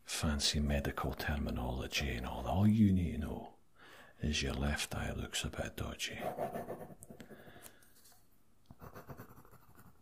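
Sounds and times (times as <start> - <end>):
speech: 0.2 - 3.6, 4.2 - 7.1
pen scratching on paper writing notes for a patient's record during an eye examination: 6.2 - 7.4, 8.8 - 10.0.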